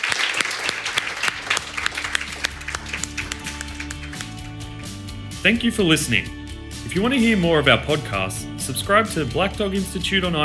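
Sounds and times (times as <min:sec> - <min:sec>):
audience applause for the panel: 0:00.0 - 0:04.6
speech: 0:05.4 - 0:10.4.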